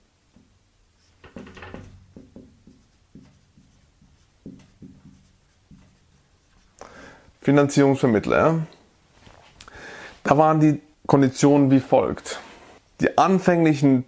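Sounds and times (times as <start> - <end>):
pen writing notes by hand on paper: 2.2 - 6.8
speech: 7.4 - 8.8, 10.3 - 12.4, 13.0 - 14.0.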